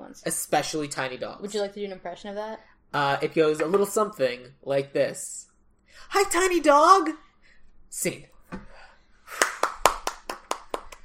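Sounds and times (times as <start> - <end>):
speech: 0.1 - 7.2, 7.9 - 8.6
hands clapping: 9.3 - 11.0.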